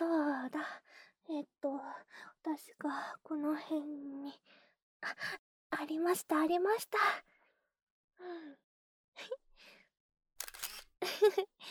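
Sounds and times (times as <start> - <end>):
speech: 1.4 - 7.3, 8.2 - 8.6, 9.2 - 9.8, 11.0 - 11.7
camera shutter for a commemorative photo: 10.4 - 10.9.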